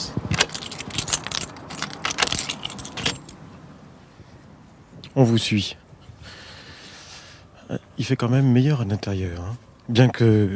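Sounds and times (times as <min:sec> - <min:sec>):
bunch of keys jangling as a church door is unlocked: 0:00.3 - 0:03.4
speech: 0:05.2 - 0:05.8, 0:08.0 - 0:10.5.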